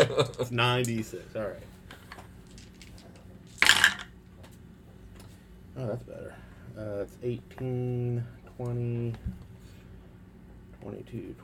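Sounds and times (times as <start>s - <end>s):
speech: 0.1s - 1.8s, 5.8s - 9.4s, 10.8s - 11.4s
dice tumbling across a hard surface: 2.5s - 4.1s.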